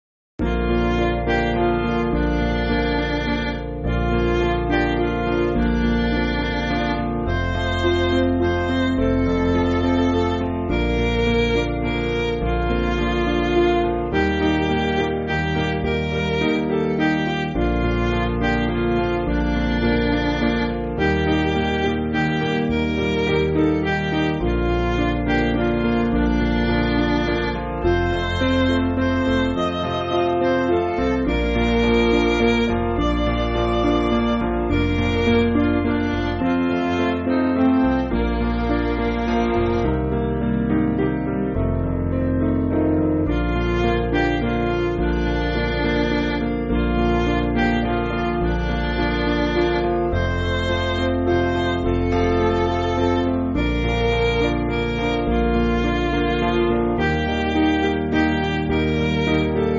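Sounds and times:
MIDI backing music for churches: 0.4 - 59.7.

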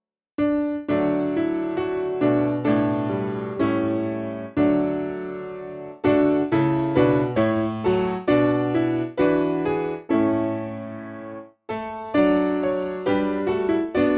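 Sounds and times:
simple piano hymn backing for churches: 0.4 - 14.1.

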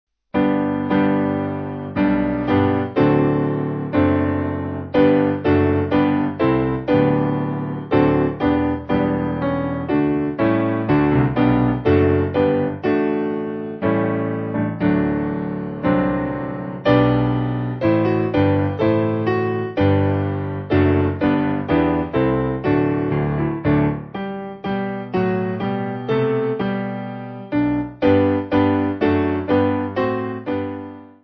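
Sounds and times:
piano: 0.3 - 31.2.

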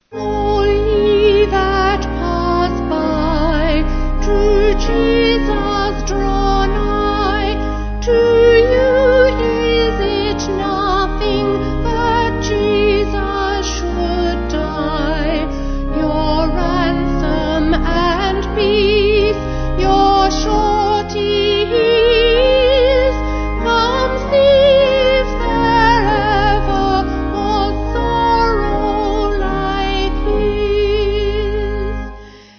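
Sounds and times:
vocal organ: 0.0 - 32.5.

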